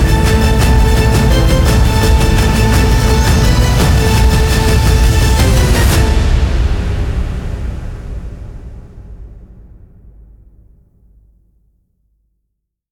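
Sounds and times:
tense violin composition: 0.0s - 8.3s.

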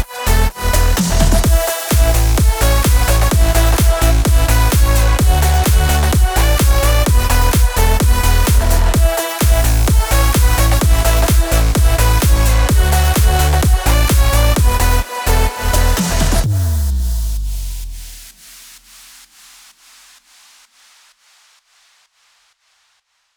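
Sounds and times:
electronic house techno music: 0.0s - 18.2s.

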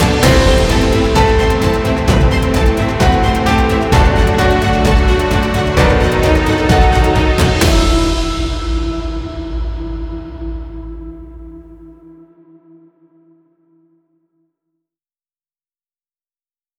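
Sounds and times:
tension music: 0.0s - 12.6s.

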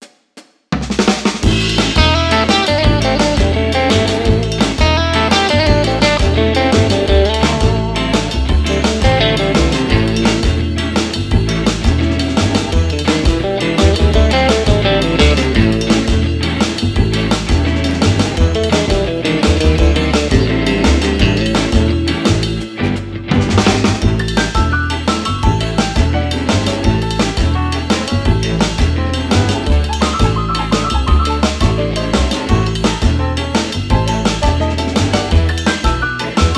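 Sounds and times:
cheerful entertainment music with dual solo: 1.6s - 36.5s.

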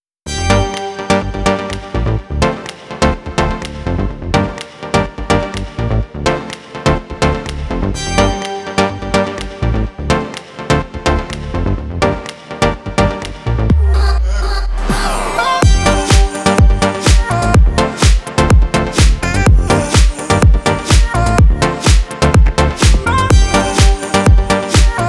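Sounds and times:
club house electronic techno music: 0.3s - 25.0s.

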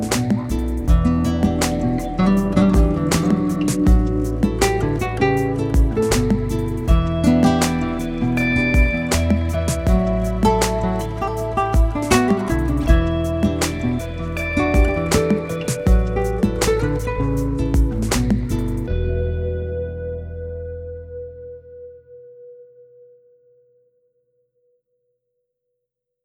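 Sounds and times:
dramatic drum loop: 0.0s - 18.9s.

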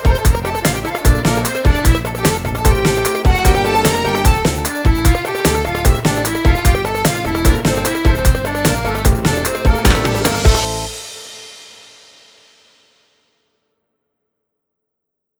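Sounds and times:
arabesk oryantal music: 0.0s - 11.3s.

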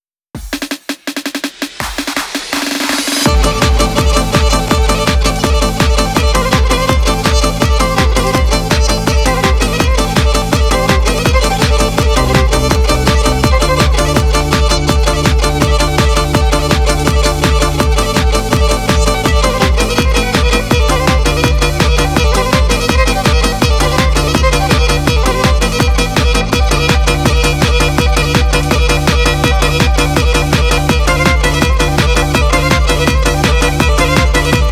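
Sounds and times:
Black Sea dik horon dance music on kemençe: 1.8s - 34.7s.

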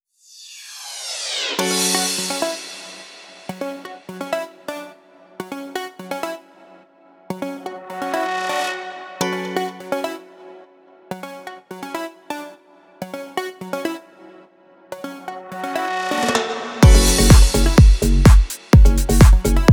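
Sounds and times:
club house electronic techno music: 1.6s - 4.6s, 7.4s - 10.3s, 15.3s - 19.7s.

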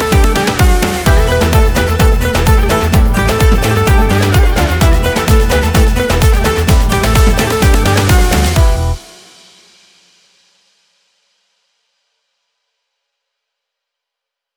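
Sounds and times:
Kurdish halay folk dance instrumental: 0.0s - 9.3s.

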